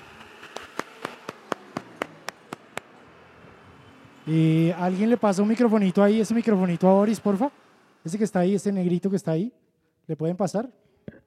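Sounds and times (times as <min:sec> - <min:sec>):
few people clapping: 0:00.4 - 0:02.9
speech: 0:04.2 - 0:10.8.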